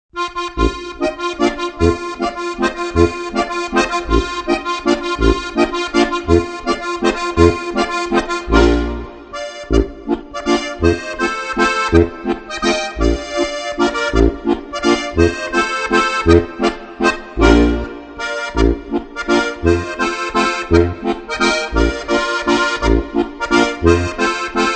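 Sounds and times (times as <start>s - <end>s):
Styrian accordion playing waltz: 0.2s - 24.7s.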